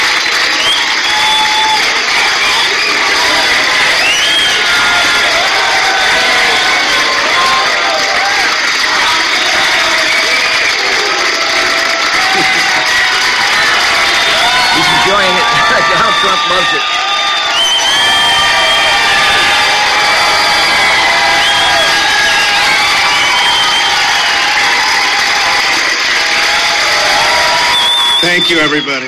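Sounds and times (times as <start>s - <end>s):
large crowd cheering and applauding: 0.0s - 29.0s
whistles: 0.2s - 3.1s, 3.9s - 4.9s, 10.0s - 10.9s, 16.8s - 19.6s, 20.4s - 24.7s, 27.6s - 29.0s
people shouting: 1.0s - 28.1s
laughter: 9.2s - 16.8s
speech: 16.5s - 16.9s, 28.2s - 29.0s.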